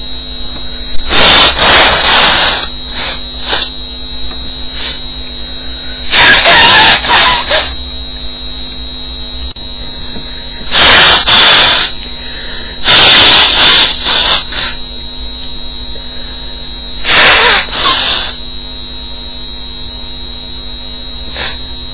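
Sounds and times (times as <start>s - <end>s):
woman blowing: 1.0s - 3.7s, 4.7s - 7.7s, 9.9s - 14.8s, 16.0s - 18.4s, 21.3s - 21.6s.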